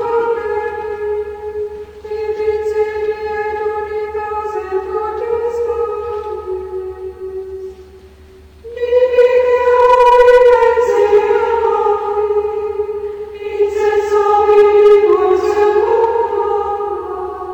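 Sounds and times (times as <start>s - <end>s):
hymn: 0.0s - 17.5s.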